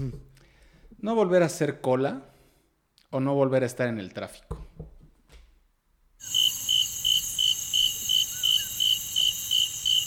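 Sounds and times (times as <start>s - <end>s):
speech: 0.0s - 0.3s, 1.0s - 2.3s, 3.1s - 4.7s
constant shrill insect drone: 6.2s - 10.0s
crickets chirping: 6.2s - 10.0s.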